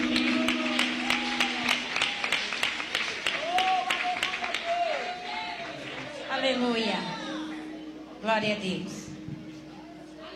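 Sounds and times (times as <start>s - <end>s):
audience applause: 0.0s - 6.8s
raised voices and cheers: 0.0s - 7.7s
speech: 8.4s - 9.0s.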